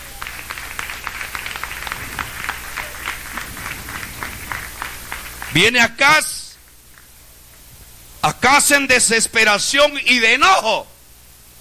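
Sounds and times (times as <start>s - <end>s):
audience clapping: 0.0s - 7.2s
speech: 5.5s - 6.4s, 8.2s - 10.9s.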